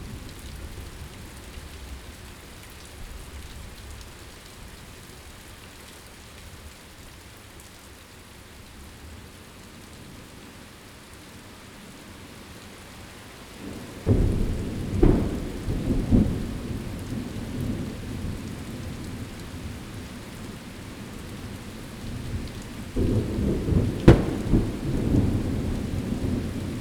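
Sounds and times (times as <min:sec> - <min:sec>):
thunderstorm: 0:13.6 - 0:26.7.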